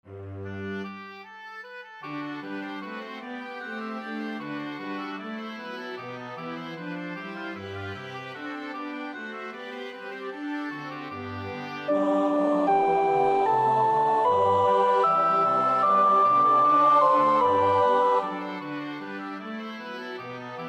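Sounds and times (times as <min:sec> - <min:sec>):
soprano practising a choir part: 0:11.9 - 0:19.1.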